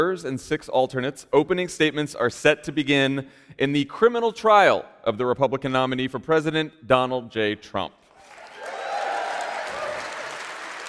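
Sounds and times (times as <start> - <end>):
speech: 0.0 - 8.0
crowd applause: 8.2 - 10.8.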